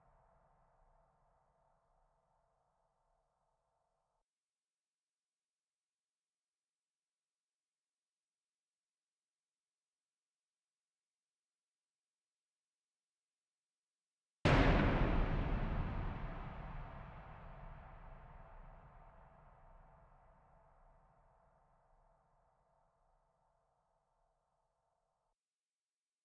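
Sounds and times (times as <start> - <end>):
thunder clap: 14.5 - 19.2.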